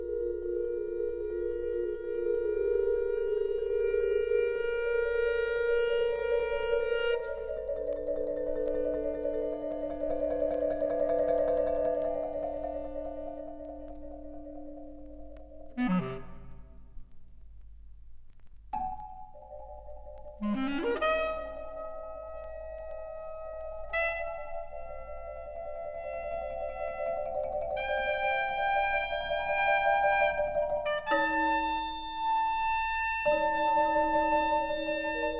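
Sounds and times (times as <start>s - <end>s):
bass clarinet: 0.0s - 10.4s, 12.0s - 17.1s, 20.4s - 35.3s
marimba: 5.8s - 16.6s, 18.8s - 21.8s, 22.6s - 35.3s.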